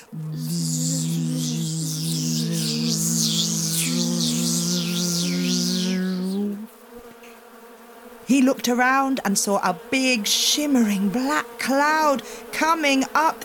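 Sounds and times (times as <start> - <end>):
swarm of wasps buzzing and droning: 0.0 - 13.4
speech: 8.3 - 13.4.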